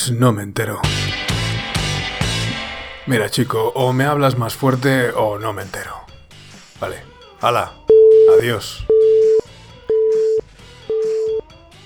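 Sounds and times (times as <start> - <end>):
speech: 0.0 - 1.2, 3.1 - 6.1, 6.8 - 9.1
telephone busy tone after hanging up: 7.9 - 11.8.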